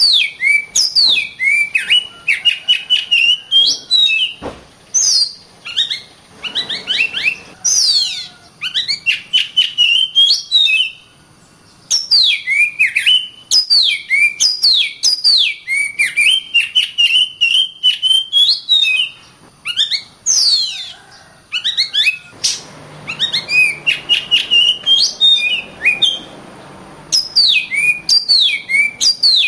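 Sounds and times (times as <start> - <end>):
Oriental magpie-robin singing clear whistled notes: 0.0 - 29.4.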